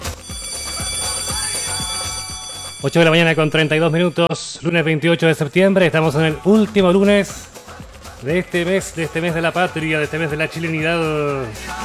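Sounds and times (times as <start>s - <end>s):
school bell ringing at Gabriela Mistral school: 0.0s - 5.5s
speech: 2.8s - 7.5s, 8.2s - 11.8s.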